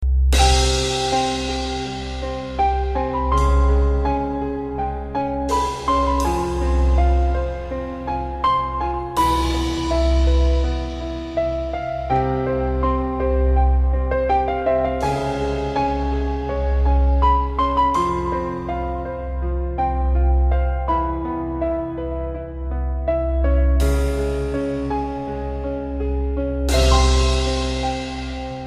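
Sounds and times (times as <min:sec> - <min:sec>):
soothing piano: 0:00.3 - 0:28.6.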